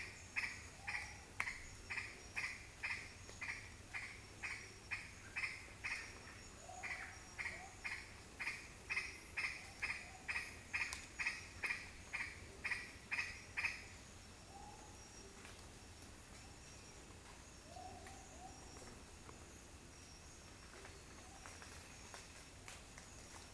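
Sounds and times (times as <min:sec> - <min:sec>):
green aracari calling: 0:00.0 - 0:15.5, 0:16.3 - 0:19.2.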